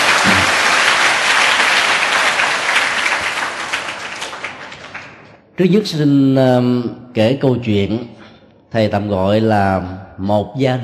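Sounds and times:
audience applause: 0:00.0 - 0:05.4
speech: 0:05.6 - 0:10.8.

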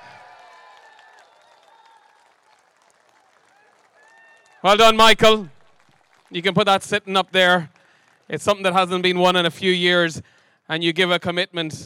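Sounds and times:
audience applause: 0:00.0 - 0:04.9, 0:05.6 - 0:08.6
speech: 0:04.6 - 0:05.6, 0:06.3 - 0:11.8.

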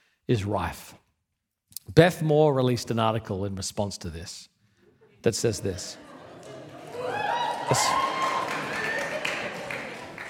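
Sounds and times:
speech: 0:00.3 - 0:01.0, 0:01.8 - 0:04.5, 0:05.2 - 0:06.1, 0:07.7 - 0:08.1
laughter: 0:04.9 - 0:10.2
audience clapping: 0:06.0 - 0:10.2
voices cheering and calling out: 0:06.0 - 0:10.2.

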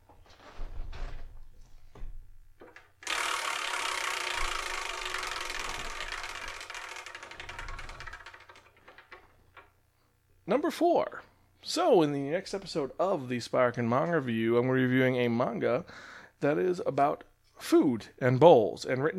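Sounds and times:
Wheel of Manga prize wheel spinning with ratcheting clicks: 0:03.0 - 0:09.7
speech: 0:10.5 - 0:19.1.

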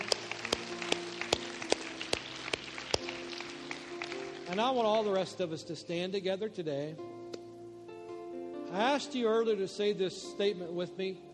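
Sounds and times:
audience applause: 0:00.0 - 0:05.2
speech: 0:04.5 - 0:07.1, 0:08.7 - 0:11.3.

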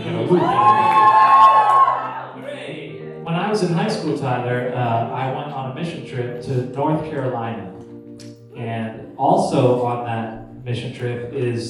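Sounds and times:
high schoolers cheering and whooping: 0:00.0 - 0:02.7
speech: 0:00.3 - 0:00.8, 0:03.6 - 0:07.8, 0:08.6 - 0:11.6.

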